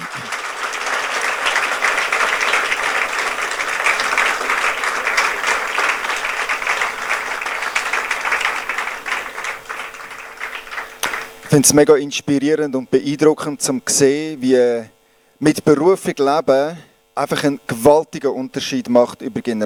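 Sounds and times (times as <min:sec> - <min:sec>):
audience applause: 0:00.0 - 0:11.7
speech: 0:11.5 - 0:19.6.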